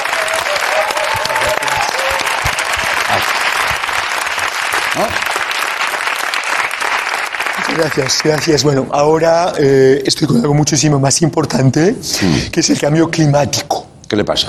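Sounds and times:
audience applause: 0:00.0 - 0:08.7
speech: 0:07.8 - 0:14.4.

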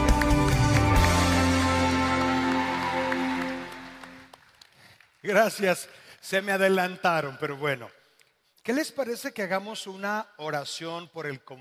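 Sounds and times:
audience applauding: 0:00.0 - 0:05.7
speech: 0:05.3 - 0:08.0, 0:08.6 - 0:11.6.

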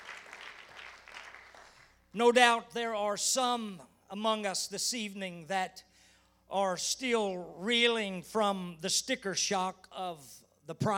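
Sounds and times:
audience clapping hands: 0:00.0 - 0:02.0
speech: 0:02.1 - 0:05.9, 0:06.5 - 0:10.9.

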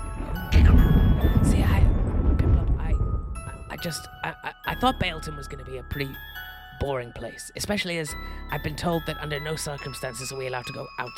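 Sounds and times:
thunder crack: 0:00.0 - 0:04.0
speech: 0:03.8 - 0:11.1.

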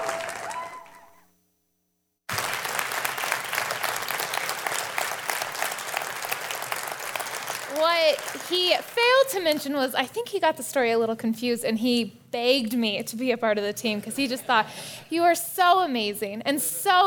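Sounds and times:
congregation clapping to welcome a new team member: 0:00.0 - 0:01.1, 0:02.3 - 0:09.1
people cheering: 0:00.0 - 0:01.2, 0:02.3 - 0:08.9
speech: 0:07.8 - 0:17.0.

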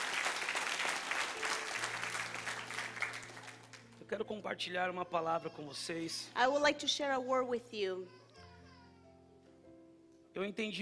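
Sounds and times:
audience applause: 0:00.0 - 0:04.0
speech: 0:04.1 - 0:08.2, 0:10.4 - 0:10.8.

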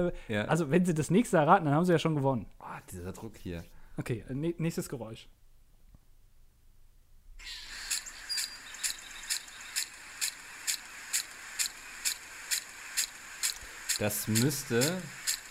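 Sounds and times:
speech: 0:00.0 - 0:05.4, 0:14.0 - 0:15.2
lawn sprinkler spraying water: 0:07.6 - 0:15.5.

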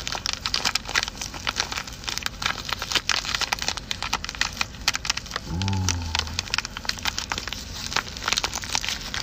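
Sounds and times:
crinkly bag of dried cannabis being opened: 0:00.0 - 0:09.2.

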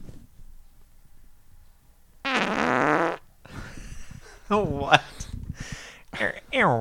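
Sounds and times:
fart: 0:02.3 - 0:03.2
speech: 0:04.5 - 0:05.3, 0:06.2 - 0:06.7.

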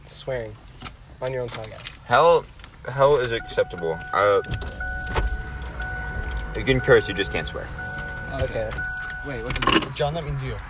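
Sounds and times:
speech: 0:00.2 - 0:05.2, 0:06.6 - 0:10.6
car power window rolling down: 0:04.4 - 0:09.8.

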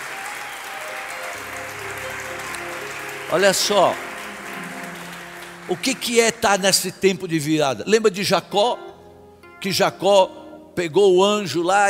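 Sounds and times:
audience applauding: 0:00.0 - 0:07.2
speech: 0:03.3 - 0:04.1, 0:05.7 - 0:08.8, 0:09.6 - 0:11.8.

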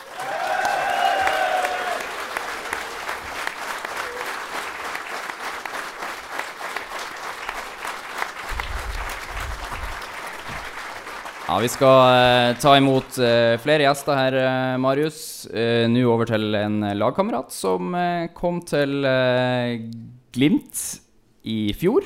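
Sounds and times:
whistles and cheers: 0:00.0 - 0:04.6
warm applause from live audience: 0:00.0 - 0:13.6
speech: 0:11.5 - 0:22.0.

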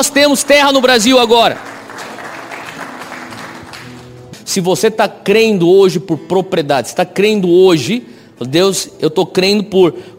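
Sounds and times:
speech: 0:00.0 - 0:01.7, 0:04.5 - 0:10.1
audience applause: 0:00.9 - 0:04.2.

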